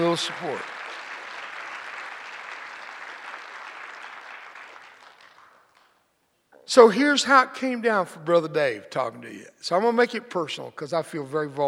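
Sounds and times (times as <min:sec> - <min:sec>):
audience applause: 0:00.0 - 0:05.9
speech: 0:00.2 - 0:00.8, 0:06.7 - 0:11.6.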